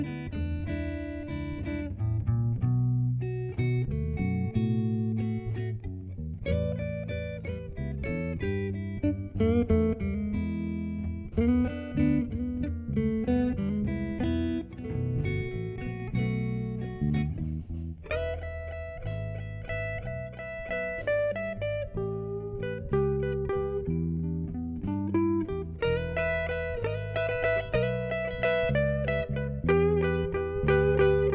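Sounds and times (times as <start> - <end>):
Delta traditional slow blues play-along music: 0.0 - 31.3.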